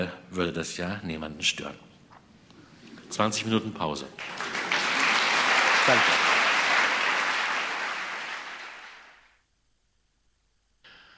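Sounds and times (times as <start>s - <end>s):
speech: 0.0s - 1.9s, 3.1s - 4.5s, 5.8s - 6.2s
enthusiastic applause: 4.2s - 9.4s.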